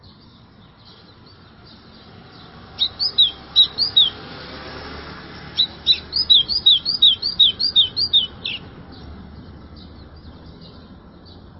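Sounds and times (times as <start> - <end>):
White-throated seedeater singing rapid downslurred whistled notes: 2.7 - 4.3, 5.5 - 8.7.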